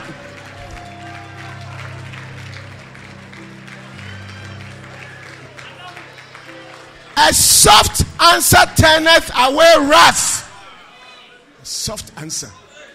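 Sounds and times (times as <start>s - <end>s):
crowd clapping: 0.0s - 9.1s
speech: 7.2s - 10.4s, 11.9s - 12.6s.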